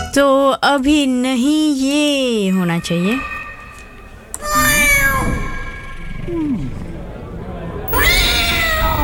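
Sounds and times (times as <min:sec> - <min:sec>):
speech: 0:00.2 - 0:03.4
cat meowing: 0:04.4 - 0:05.8, 0:07.9 - 0:09.0.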